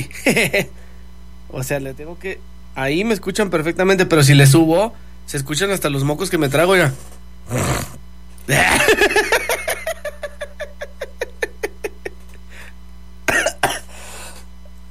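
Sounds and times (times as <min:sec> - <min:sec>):
laughter: 0:00.0 - 0:00.7, 0:08.5 - 0:12.4
speech: 0:00.0 - 0:00.8, 0:01.5 - 0:07.9, 0:08.5 - 0:09.3
person coughing fit while choking: 0:13.3 - 0:14.0.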